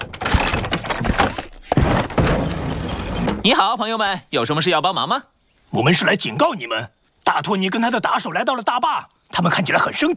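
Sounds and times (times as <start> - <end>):
door opening: 0.0 - 3.5
speech: 3.4 - 10.1.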